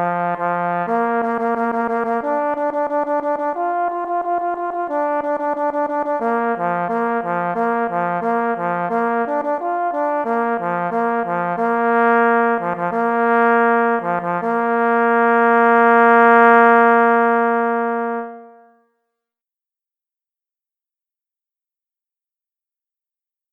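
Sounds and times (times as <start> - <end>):
solo parforce horn fanfare: 0.0 - 18.8.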